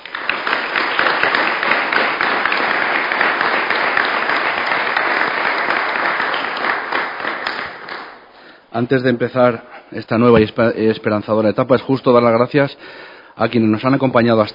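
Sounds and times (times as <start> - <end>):
sustained applause from a sizable crowd: 0.0 - 8.3
speech: 8.7 - 14.5.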